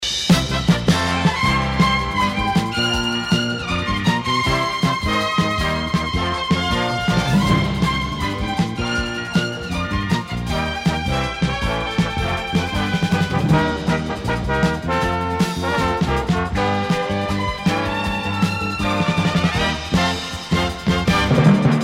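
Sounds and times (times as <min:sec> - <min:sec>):
news closing music: 0:00.3 - 0:21.8.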